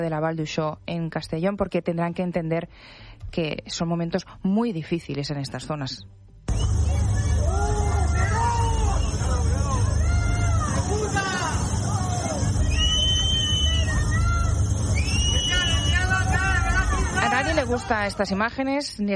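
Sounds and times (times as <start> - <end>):
speech: 0.0 - 6.6, 17.7 - 19.1
angry residents shouting at arriving politician Pedro Sánchez: 6.5 - 18.2.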